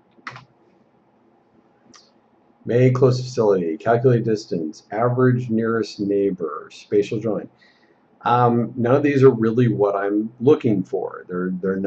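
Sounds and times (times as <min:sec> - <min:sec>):
quiet hiss: 0:00.0 - 0:11.8
typing on a computer keyboard: 0:00.1 - 0:00.5
speech: 0:02.7 - 0:11.8.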